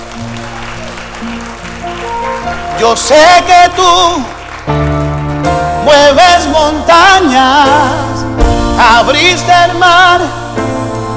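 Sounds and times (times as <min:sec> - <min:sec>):
audience applauding: 0:00.0 - 0:06.5
speech: 0:01.2 - 0:04.8, 0:05.8 - 0:10.4.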